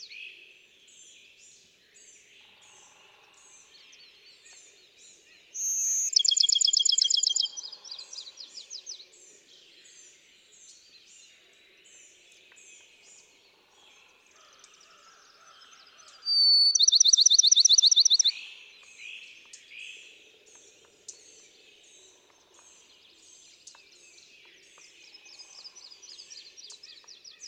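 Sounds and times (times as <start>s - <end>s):
other songbirds twittering: 0.8s - 27.4s
Bachman's sparrow whistle and trill song: 5.6s - 7.6s, 16.3s - 18.4s.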